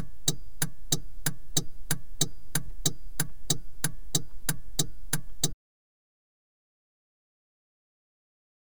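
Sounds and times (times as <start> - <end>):
car interior indicators operating: 0.0 - 5.6.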